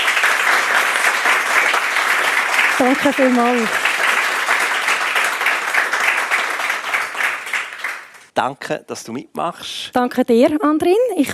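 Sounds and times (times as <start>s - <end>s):
audience applause welcoming a guest: 0.0s - 8.3s
speech: 2.8s - 3.9s, 8.4s - 11.3s.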